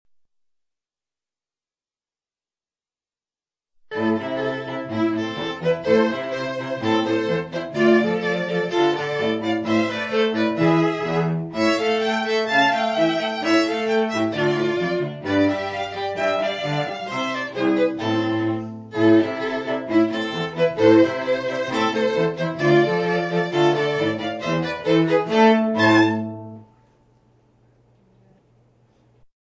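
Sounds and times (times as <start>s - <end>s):
musical trio: 3.9s - 27.0s.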